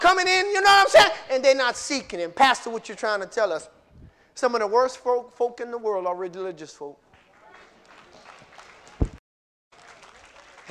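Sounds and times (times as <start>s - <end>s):
speech: 0.2s - 3.8s, 4.4s - 7.0s
partial audience clapping: 7.1s - 9.2s, 9.7s - 10.7s.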